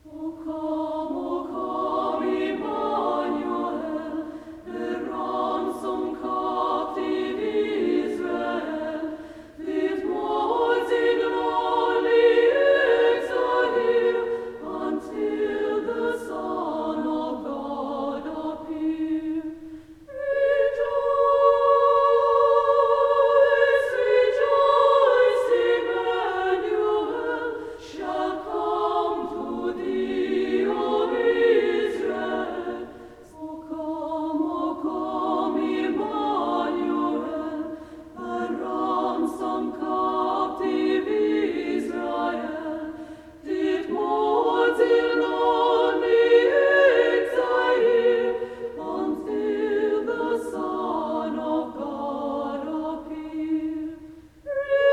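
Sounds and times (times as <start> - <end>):
women's choir singing: 0.0 - 54.9.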